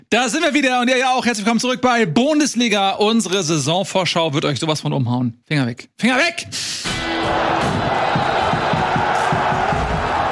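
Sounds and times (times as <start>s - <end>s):
speech: 0.1s - 8.3s
audience cheering and applause: 6.9s - 10.3s.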